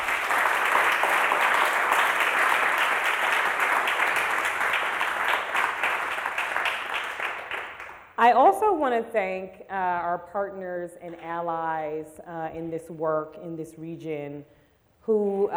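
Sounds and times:
audience round of applause: 0:00.0 - 0:08.0
speech: 0:08.2 - 0:15.5.

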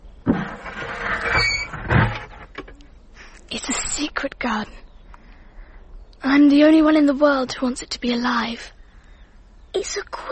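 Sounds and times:
door closing: 0:00.3 - 0:02.8
speech: 0:04.4 - 0:04.8, 0:06.4 - 0:08.8, 0:09.8 - 0:10.2.

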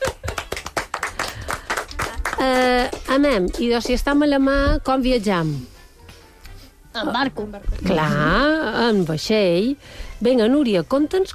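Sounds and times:
applause for a participant: 0:00.0 - 0:03.6
speech: 0:02.4 - 0:05.7, 0:07.0 - 0:11.3.

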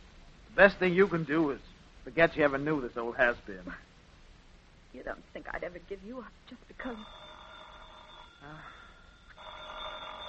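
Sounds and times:
speech: 0:00.6 - 0:03.9, 0:04.9 - 0:07.2, 0:08.4 - 0:08.8
old telephone ringing: 0:06.8 - 0:10.2.

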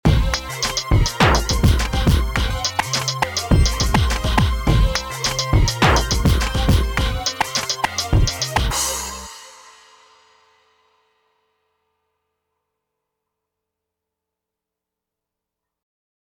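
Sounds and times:
rap instrumental beat: 0:00.0 - 0:09.6.

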